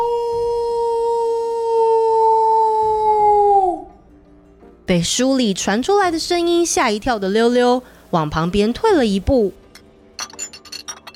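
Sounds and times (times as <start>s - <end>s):
animal howling: 0.0s - 4.0s
speech: 4.9s - 9.6s.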